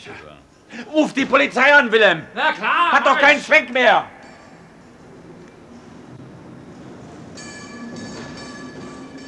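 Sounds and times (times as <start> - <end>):
speech: 0.0 - 4.2
tram metallic wheel squeal: 4.3 - 9.2
tram rumbling on rails: 4.9 - 9.2.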